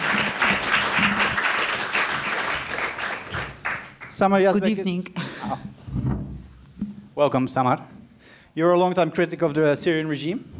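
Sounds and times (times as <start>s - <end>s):
audience applause: 0.0s - 4.6s
speech: 4.2s - 6.2s, 7.2s - 8.0s, 8.6s - 10.5s.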